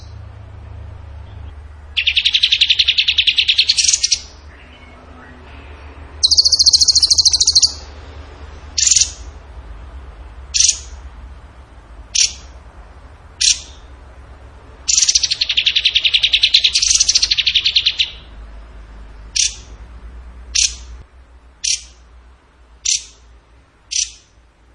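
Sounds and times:
songbird rapid buzzy high trill: 0.0 - 9.5, 10.4 - 11.1, 12.0 - 12.6, 13.4 - 14.0, 14.8 - 21.0, 21.6 - 22.1, 22.8 - 23.3, 23.9 - 24.4
low steady hum: 0.0 - 24.7.

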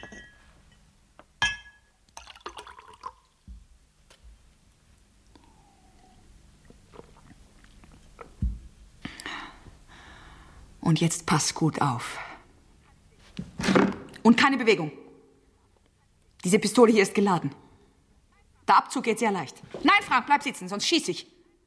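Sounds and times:
glasses clinking: 0.0 - 0.8, 1.4 - 2.9
whisky being poured: 2.1 - 3.4
speech: 10.9 - 12.2, 14.3 - 15.0, 16.4 - 17.6, 18.8 - 21.3.

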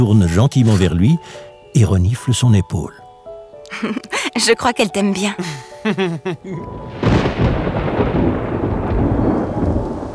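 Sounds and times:
speech: 0.0 - 3.0, 3.7 - 7.1
laughter: 3.7 - 4.4, 5.4 - 6.7
thunder rumbling: 6.6 - 10.1.

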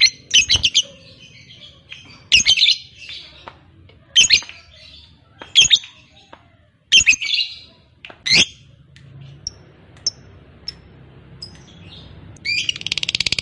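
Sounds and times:
lovebird chirping: 0.0 - 3.2, 4.2 - 6.2, 6.9 - 7.7, 8.3 - 13.4
low background hum: 0.0 - 13.4.

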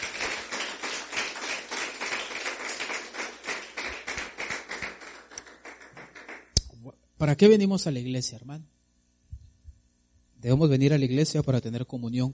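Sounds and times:
church congregation clapping in a steady rhythmic beat: 0.0 - 6.8
speech: 7.2 - 8.8, 10.4 - 12.3.

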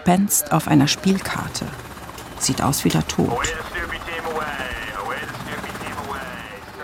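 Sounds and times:
speech: 0.0 - 4.0
naval military helicopter rotor and turbine spinning up for takeoff aboard ship: 0.1 - 6.8.

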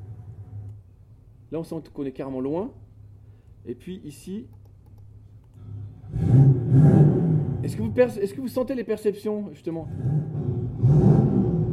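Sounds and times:
speech: 1.5 - 2.8, 3.6 - 4.6, 7.7 - 11.1
car engine revving, recorded at exhaust: 5.6 - 8.2, 9.8 - 11.7.

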